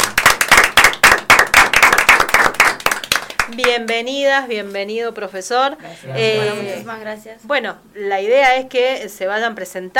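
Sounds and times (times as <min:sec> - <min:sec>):
audience applause: 0:00.0 - 0:03.5
speech: 0:03.5 - 0:09.9.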